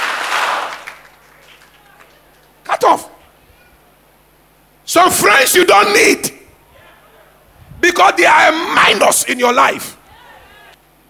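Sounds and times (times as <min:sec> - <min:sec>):
audience clapping hands: 0:00.0 - 0:02.6
speech: 0:02.8 - 0:03.2, 0:04.9 - 0:06.4, 0:08.0 - 0:10.0.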